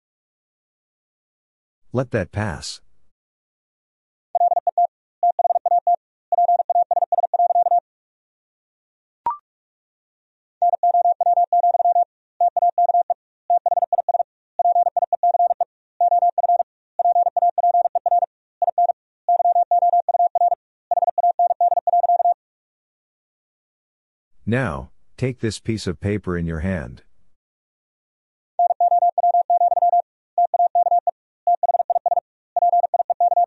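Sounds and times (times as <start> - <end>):
speech: 1.9 - 2.9, 24.5 - 27.1
fast Morse code beeps: 4.4 - 7.8, 10.7 - 22.4, 28.6 - 33.4.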